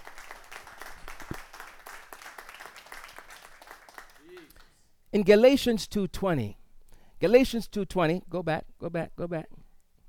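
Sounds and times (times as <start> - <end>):
audience clapping: 0.0 - 4.8
speech: 5.2 - 6.6, 7.2 - 9.6.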